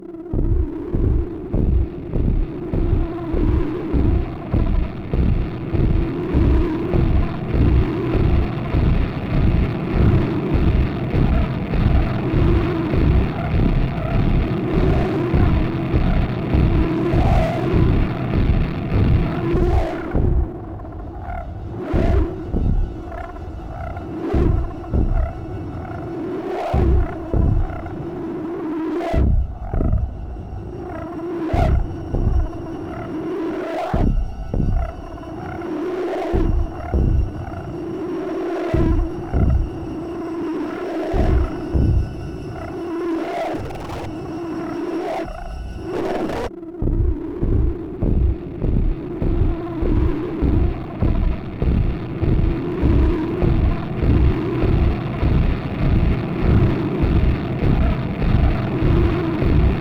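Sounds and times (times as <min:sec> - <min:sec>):
fight drone: 0:00.0 - 0:59.7.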